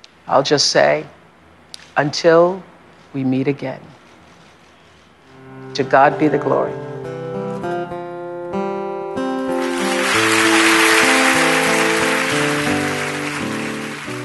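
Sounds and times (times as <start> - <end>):
speech: 0.3 - 1.2, 2.0 - 4.0, 5.8 - 6.8
soft sustained music: 5.3 - 14.2
standing audience applause: 9.5 - 14.2.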